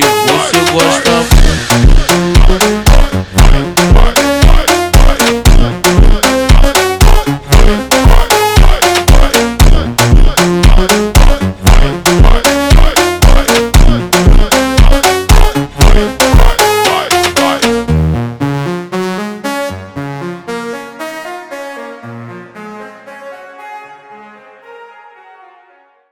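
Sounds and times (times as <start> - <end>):
slowed funk music: 0.0 - 18.4.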